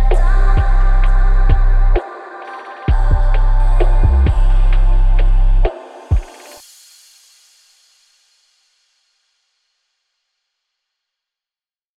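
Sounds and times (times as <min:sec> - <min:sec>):
cloud trap and late night beats: 0:00.0 - 0:06.7.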